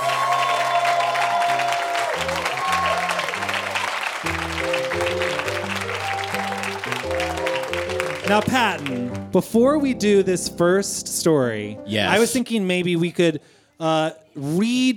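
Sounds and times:
audience applause welcoming a guest onto a comedy show: 0:00.0 - 0:09.2
upbeat musical tune: 0:02.2 - 0:12.5
speech: 0:08.3 - 0:14.9.

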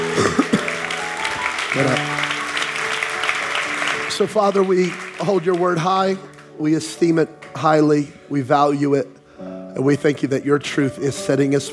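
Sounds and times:
audience clapping: 0:00.0 - 0:07.9
speech: 0:04.2 - 0:09.2, 0:09.8 - 0:11.7.

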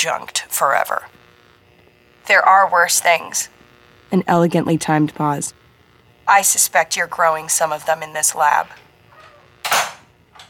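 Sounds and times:
speech: 0:00.0 - 0:01.2, 0:02.3 - 0:05.6, 0:06.3 - 0:08.8
door banging shut: 0:09.6 - 0:10.0.

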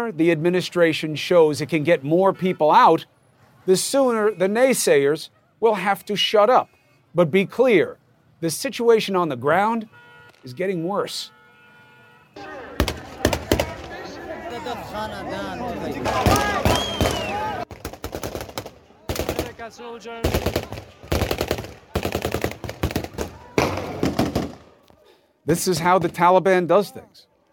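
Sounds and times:
speech: 0:00.0 - 0:11.4, 0:14.6 - 0:16.6, 0:19.6 - 0:20.8, 0:25.5 - 0:27.3
crowd shouting and screaming in panic: 0:12.4 - 0:17.7, 0:23.2 - 0:24.0
rapid automatic gunfire on a crowd: 0:12.8 - 0:13.9, 0:16.2 - 0:19.6, 0:20.2 - 0:24.6.

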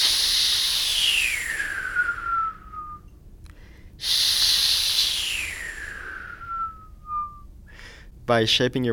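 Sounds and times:
person making breathy hisses from an H sound: 0:00.0 - 0:02.9, 0:04.0 - 0:06.9.

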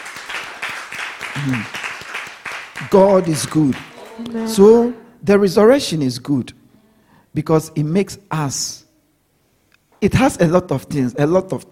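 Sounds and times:
audience clapping: 0:00.0 - 0:04.8
person exclaiming: 0:01.4 - 0:01.7, 0:04.0 - 0:05.0
speech: 0:01.4 - 0:01.8, 0:02.8 - 0:06.6, 0:07.4 - 0:08.8, 0:10.0 - 0:11.7.

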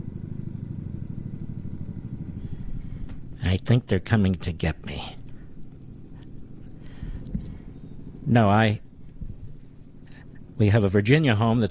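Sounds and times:
helicopter flying overhead: 0:00.0 - 0:11.6
speech: 0:03.5 - 0:05.2, 0:08.3 - 0:08.9, 0:10.6 - 0:11.6.

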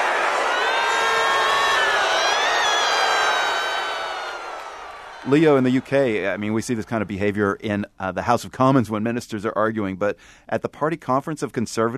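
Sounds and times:
large crowd booing and jeering a speaker off stage: 0:00.0 - 0:07.0
speech: 0:05.2 - 0:11.9.

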